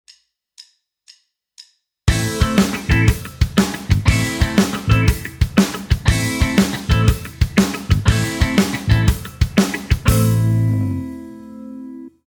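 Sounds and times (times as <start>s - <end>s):
backing music: 2.1s - 11.9s.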